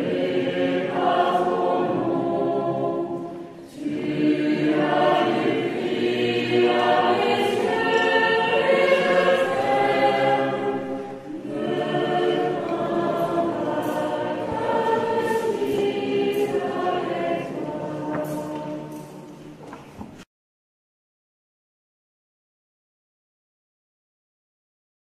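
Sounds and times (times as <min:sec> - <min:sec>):
scout choir singing: 0:00.0 - 0:19.6.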